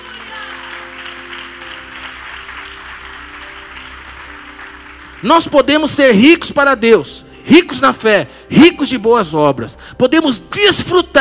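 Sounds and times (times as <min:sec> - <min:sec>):
audience applause: 0:00.0 - 0:05.5
speech: 0:05.2 - 0:11.2.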